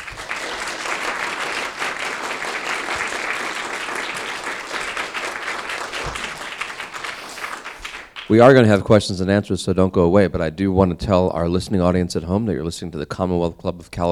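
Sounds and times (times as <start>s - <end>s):
audience applause at the Commonwealth Club of California: 0.0s - 8.7s
speech: 8.3s - 14.0s.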